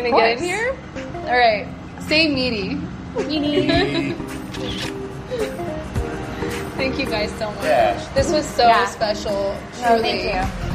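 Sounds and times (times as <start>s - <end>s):
speech: 0.0s - 5.7s, 6.8s - 10.7s
people talking and laughing: 3.1s - 10.6s
camera shutter click taking a selfie at breakfast: 4.5s - 5.0s.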